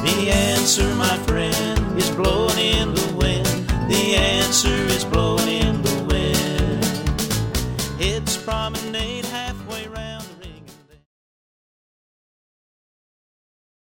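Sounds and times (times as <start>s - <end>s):
vocals: 0.0s - 11.1s.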